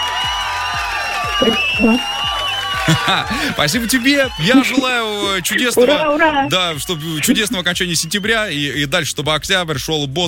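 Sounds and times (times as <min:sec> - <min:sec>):
applause: 0:00.0 - 0:08.8
speech: 0:01.4 - 0:02.2, 0:02.9 - 0:10.2
laughter: 0:02.8 - 0:08.2.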